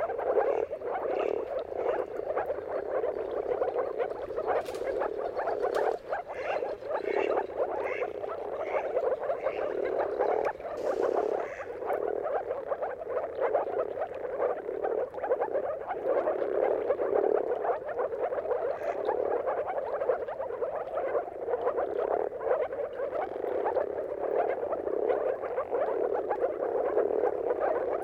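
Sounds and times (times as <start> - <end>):
marsh frogs giving mating calls at sunrise: 0.0 - 28.0.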